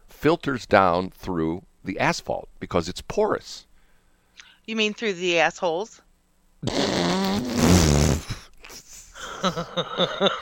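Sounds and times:
speech: 0.2s - 3.7s, 4.7s - 6.0s, 6.6s - 7.6s, 9.4s - 10.3s
recorded fart sound effect: 6.6s - 8.4s.

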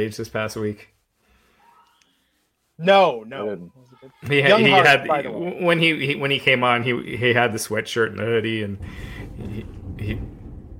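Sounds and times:
speech: 0.0s - 1.0s, 2.8s - 10.4s
thunder rumbling: 8.4s - 10.7s.

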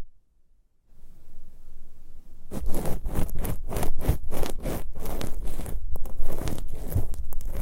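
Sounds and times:
soft rustle: 0.9s - 7.6s
ear picking crackly scratching: 2.5s - 7.6s
ear picking thumping rubs: 2.5s - 7.6s.

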